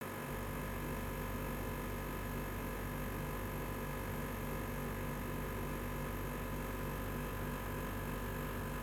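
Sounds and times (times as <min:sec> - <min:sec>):
air conditioning unit vibrating: 0:00.1 - 0:08.8.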